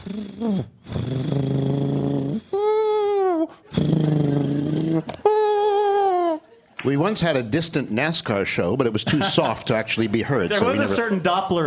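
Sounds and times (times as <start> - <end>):
speech: 0.0 - 1.5, 6.8 - 11.6
human voice imitating a sleeping cat snoring: 0.0 - 5.3.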